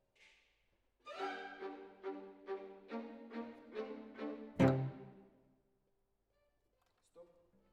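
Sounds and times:
cello solo: 1.1 - 5.2.

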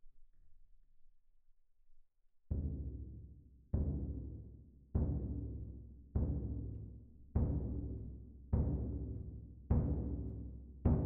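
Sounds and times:
percussion: 2.5 - 11.0.

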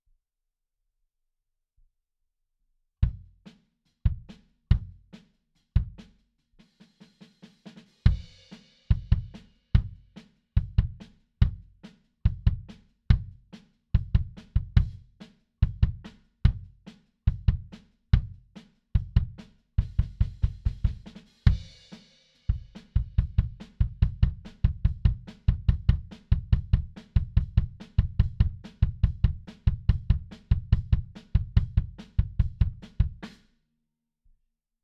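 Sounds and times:
bass drum: 3.0 - 3.4, 4.1 - 5.1, 5.8 - 6.1, 8.1 - 13.4, 14.0 - 21.8, 22.5 - 33.4.

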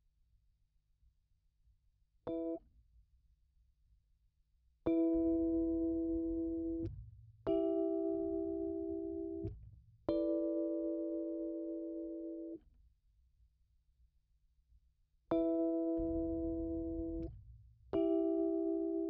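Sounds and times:
Rhodes electric piano: 4.9 - 6.9, 7.5 - 9.5, 10.1 - 12.6, 15.3 - 17.3, 18.0 - 19.0.

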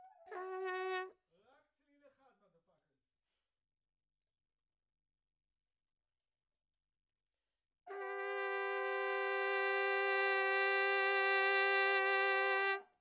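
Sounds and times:
trumpet: 0.0 - 1.2, 7.9 - 12.9.

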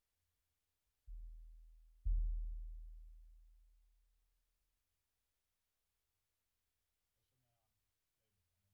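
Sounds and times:
bass drum hit: 2.1 - 2.9.

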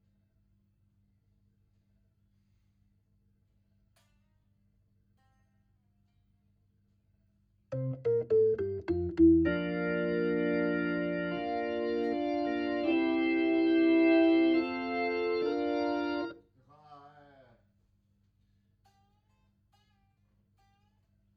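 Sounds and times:
Hammond organ through Leslie rotating speaker: 7.7 - 16.4.

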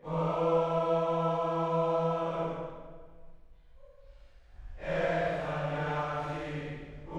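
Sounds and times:
choir singing: 0.0 - 2.8, 4.8 - 7.1.

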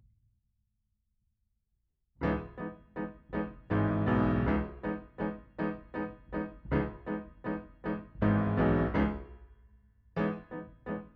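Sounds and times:
piano: 2.2 - 11.1.

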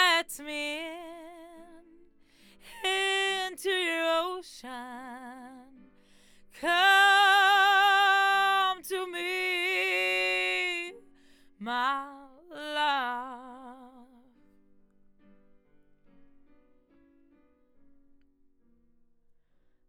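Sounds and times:
vocals: 0.0 - 14.4.

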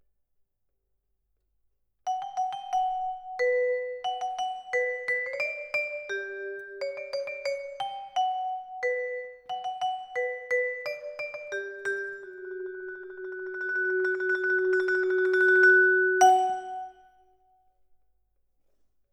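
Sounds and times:
vibraphone: 2.1 - 17.2.

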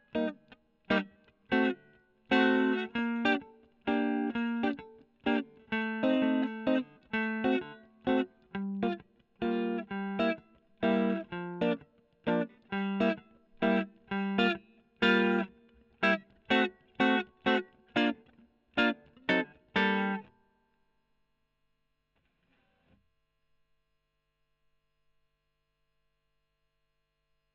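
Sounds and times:
electric guitar recorded with a Gefell microphone: 0.0 - 20.5.

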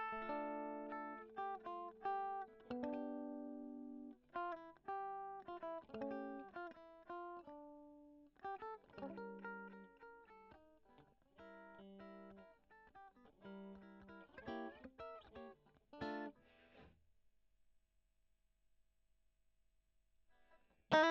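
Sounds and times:
electric guitar: 0.0 - 16.9.

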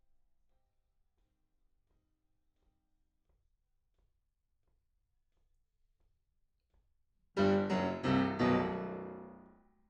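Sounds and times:
piano: 7.4 - 9.6.

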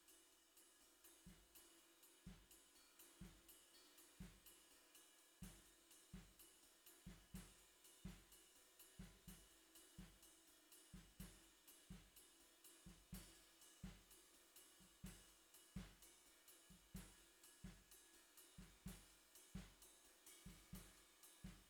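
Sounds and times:
bottom snare drum: 5.4 - 10.3, 10.9 - 14.2, 14.8 - 21.6.

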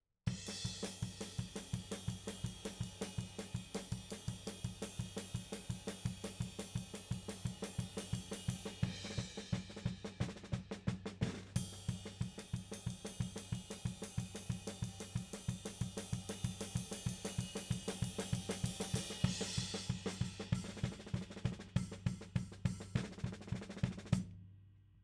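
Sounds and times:
tom drum: 0.3 - 24.3.

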